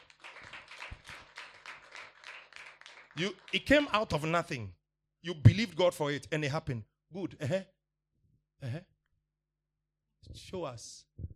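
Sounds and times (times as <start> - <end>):
audience applause: 0.0 - 4.3
speech: 3.2 - 7.8, 8.6 - 8.9, 10.2 - 11.1.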